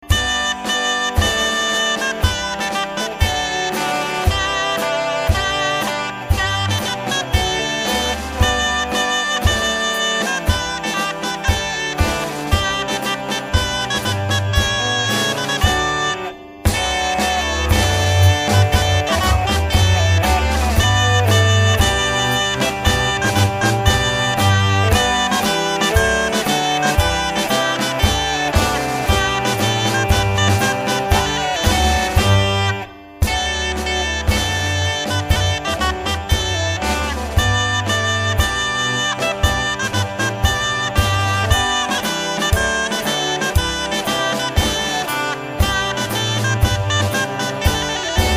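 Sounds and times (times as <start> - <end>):
trumpet piece: 0.0 - 48.3.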